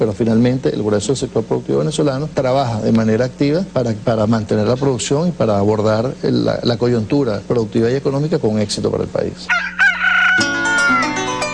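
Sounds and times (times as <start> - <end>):
speech: 0.0 - 9.8
rooster crowing: 9.5 - 11.4.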